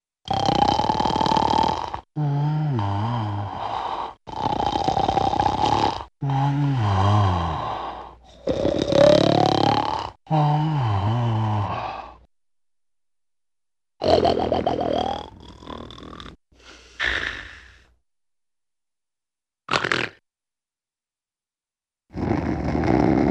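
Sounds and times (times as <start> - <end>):
funny man snoring: 0.2 - 12.3, 14.0 - 18.0, 22.1 - 23.2.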